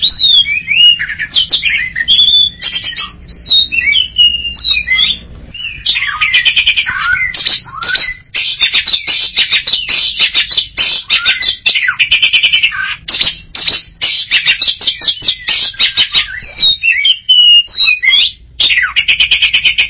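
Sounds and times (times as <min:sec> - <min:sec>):
greater green leafbird singing: 0:00.0 - 0:19.8.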